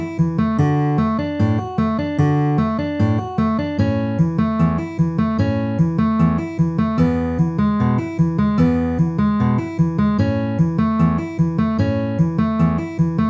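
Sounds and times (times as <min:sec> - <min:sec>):
D A E A pinch fingerpicking with alternating bass: 0:00.0 - 0:13.2.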